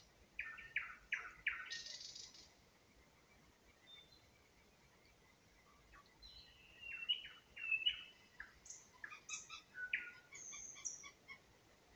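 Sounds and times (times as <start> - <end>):
nightingale spring song in Ukraine: 0.4 - 2.5, 6.2 - 11.2.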